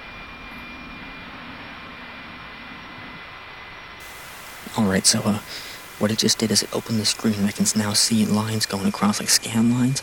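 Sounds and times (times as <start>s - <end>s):
thin continuous tone in NOAA weather satellite signal: 0.2s - 10.0s
NOAA weather satellite radio signal static hiss: 4.0s - 10.0s
speech: 4.7s - 10.0s.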